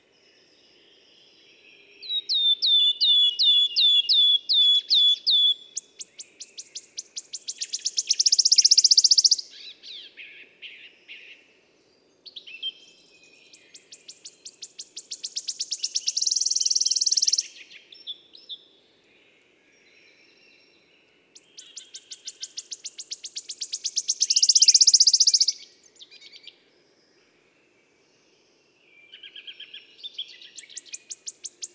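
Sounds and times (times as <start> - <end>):
wood warbler singing: 2.0 - 9.9, 12.3 - 18.5, 19.8 - 26.6, 30.1 - 31.7.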